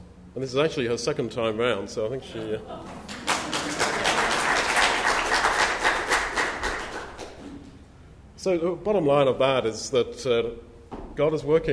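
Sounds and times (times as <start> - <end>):
speech: 0.4 - 3.2, 8.4 - 11.7
audience clapping: 2.9 - 7.7.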